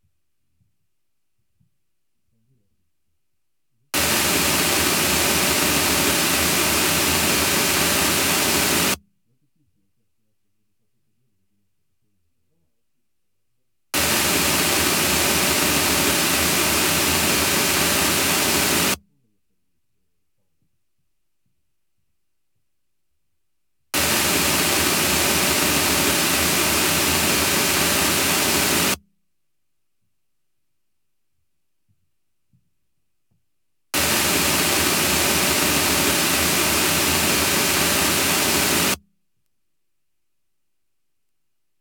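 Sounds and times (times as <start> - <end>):
pink noise reverberation in an announcer booth: 4.4 - 9.0, 14.2 - 19.0, 24.1 - 29.0, 34.0 - 39.0.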